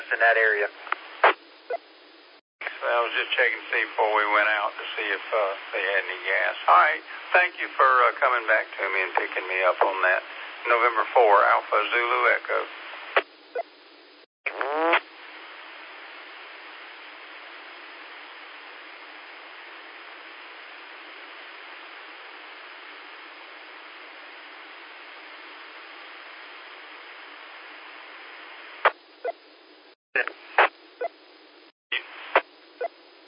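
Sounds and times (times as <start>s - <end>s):
radio channel static hiss: 0.0s - 33.2s
speech: 0.1s - 1.8s, 2.8s - 12.8s
crackling bursts and clicks: 0.5s - 1.4s, 14.5s - 29.2s, 30.2s - 30.9s, 31.9s - 32.6s
radio channel opening click: 0.8s - 1.4s, 2.6s - 2.8s, 9.1s - 9.9s, 28.7s - 29.0s.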